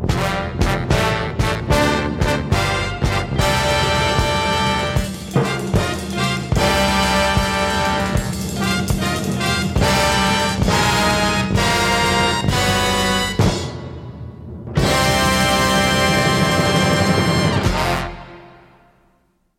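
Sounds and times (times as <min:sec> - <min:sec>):
fanfare: 0:00.1 - 0:19.1.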